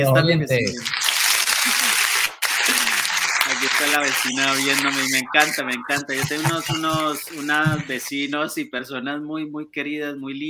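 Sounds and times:
speech: 0.0 - 1.0, 3.8 - 10.4
small group applauding: 0.8 - 8.3
faint talk: 2.7 - 8.3.

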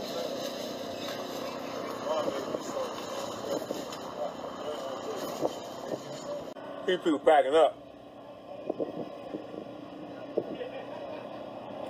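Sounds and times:
wind blowing on pop-up tents outdoors: 0.4 - 6.5, 8.6 - 10.7
speech: 6.9 - 7.8.

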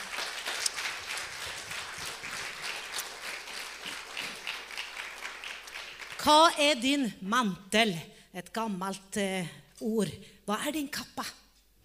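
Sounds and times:
audience applause: 0.0 - 6.2
speech: 6.2 - 11.4.

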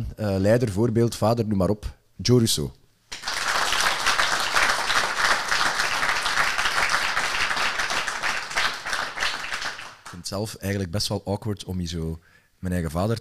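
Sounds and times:
speech: 0.0 - 2.8, 10.3 - 13.1
audience applause: 3.1 - 10.2.

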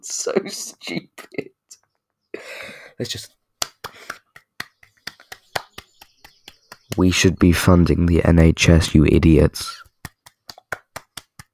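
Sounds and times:
speech: 0.0 - 1.6, 2.4 - 3.4, 7.0 - 9.8
hands clapping: 3.6 - 7.7, 9.2 - 11.5.

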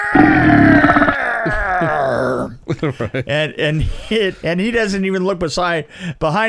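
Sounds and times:
voice imitating an enormous burp: 0.0 - 1.6
speech: 0.4 - 1.1, 2.8 - 6.4.

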